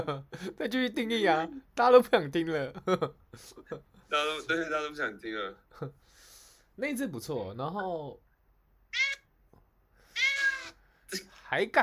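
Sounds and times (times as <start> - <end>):
speech: 0.0 - 6.1, 6.8 - 8.2, 11.1 - 11.8
cat meowing: 8.9 - 9.3, 10.1 - 10.8.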